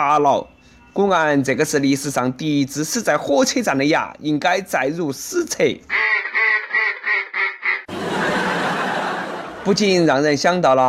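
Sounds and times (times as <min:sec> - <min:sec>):
speech: 0:00.0 - 0:06.0, 0:09.6 - 0:10.8
duck quacking: 0:05.9 - 0:07.9
laughter: 0:07.9 - 0:10.0.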